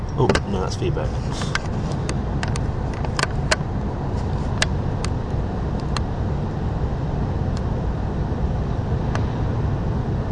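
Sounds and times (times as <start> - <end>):
dense steady roar of traffic on a New York street: 0.0 - 10.2
scattered sharp clicks and knocks: 0.1 - 0.6, 1.4 - 3.7
speech: 0.2 - 2.1.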